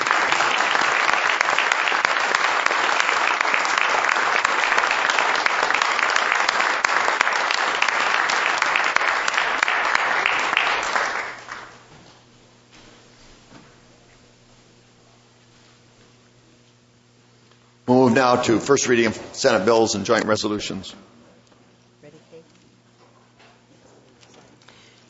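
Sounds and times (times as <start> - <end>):
crowd applause: 0.0 - 11.8
speech: 18.2 - 21.1.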